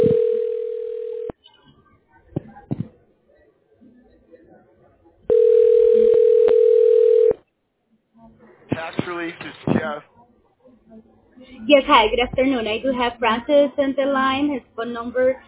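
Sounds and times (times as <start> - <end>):
telephone ringing tone: 0.0 - 1.3, 5.3 - 7.4
speech: 11.7 - 15.4.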